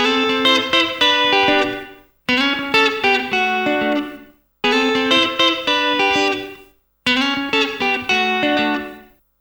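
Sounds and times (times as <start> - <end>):
South African township guitar playing: 0.0 - 9.2.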